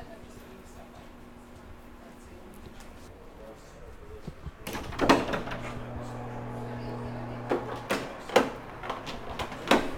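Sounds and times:
electronic door opening in a hospital hall: 0:04.6 - 0:09.8.

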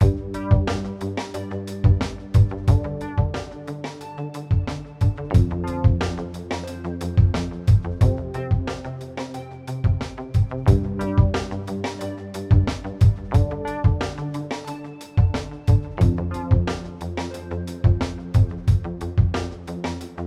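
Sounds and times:
smooth bassline: 0:00.0 - 0:20.2.

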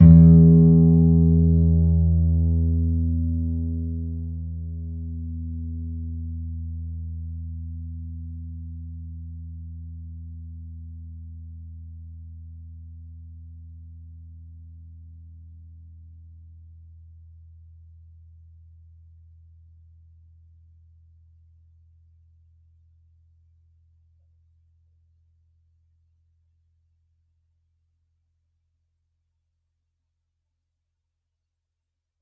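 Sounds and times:
clean guitar E string pluck: 0:00.0 - 0:05.7.

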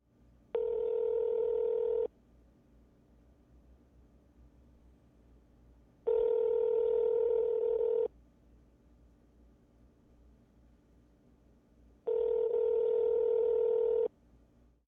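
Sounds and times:
cell phone ringing in ear: 0:00.6 - 0:02.1, 0:06.1 - 0:08.1, 0:12.1 - 0:14.1.

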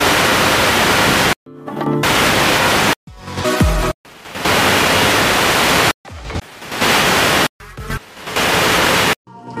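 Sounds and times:
radio stations switching: 0:00.0 - 0:01.4, 0:02.0 - 0:03.0, 0:04.1 - 0:09.2.

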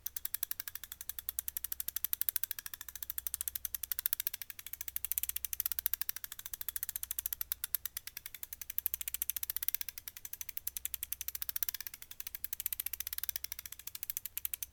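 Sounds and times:
Craftsman ratchet spinning slowly: 0:00.0 - 0:14.7.

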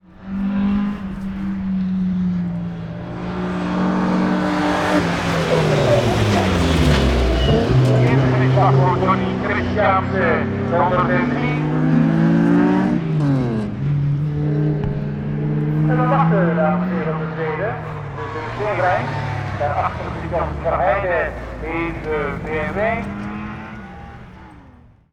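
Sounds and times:
rallycross race cars passing by: 0:00.0 - 0:25.1
rallycross commentator speaking: 0:04.7 - 0:06.6, 0:07.5 - 0:13.0, 0:15.0 - 0:24.4.

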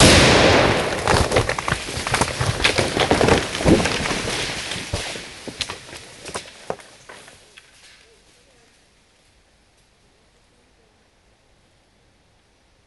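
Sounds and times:
heavy explosion in forest with debris: 0:00.0 - 0:05.0
tree falling: 0:00.0 - 0:08.0.

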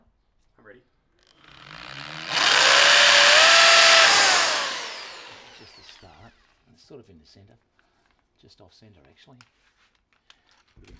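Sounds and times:
drill: 0:01.5 - 0:06.2.

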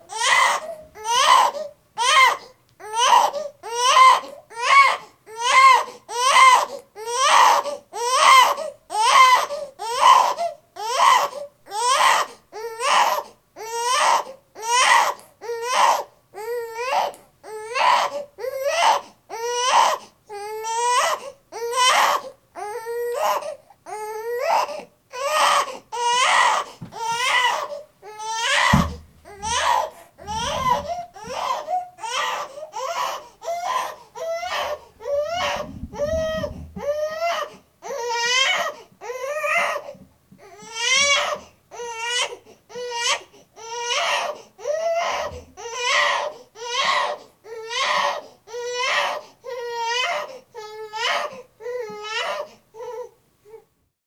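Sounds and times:
baby crying: 0:00.0 - 0:53.6.

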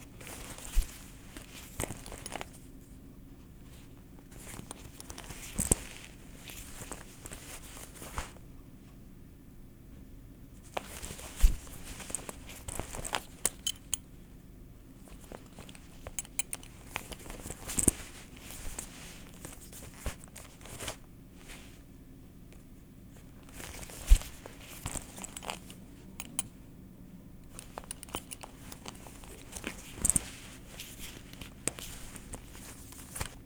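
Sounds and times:
leather belt: 0:00.2 - 0:02.6, 0:04.3 - 0:08.4, 0:10.7 - 0:14.0, 0:15.0 - 0:21.8, 0:23.4 - 0:26.4, 0:27.5 - 0:33.4.

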